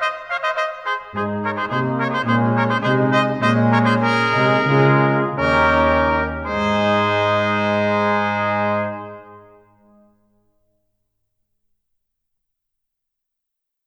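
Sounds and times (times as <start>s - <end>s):
brass band playing: 0.0s - 9.7s.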